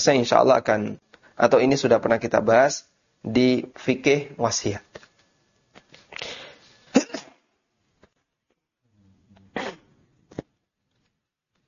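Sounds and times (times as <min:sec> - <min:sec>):
speech: 0:00.0 - 0:04.9
person sneezing: 0:06.1 - 0:07.4, 0:09.5 - 0:10.0.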